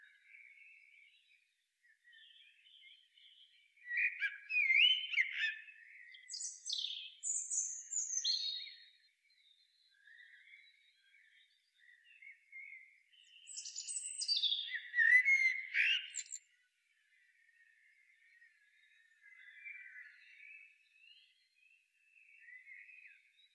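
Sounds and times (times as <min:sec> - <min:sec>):
common blackbird warbling song: 0:00.0 - 0:23.5.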